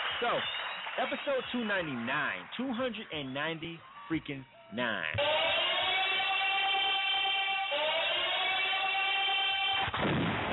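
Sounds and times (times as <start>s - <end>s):
speech: 0.2s - 5.4s
subway train electric whine: 5.2s - 9.9s.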